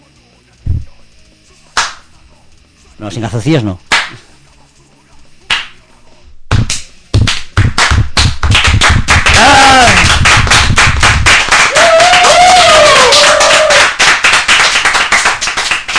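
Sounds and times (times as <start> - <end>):
audience doing an American applause: 1.8 - 2.0, 3.9 - 4.2, 6.5 - 15.9
speech: 3.0 - 4.2.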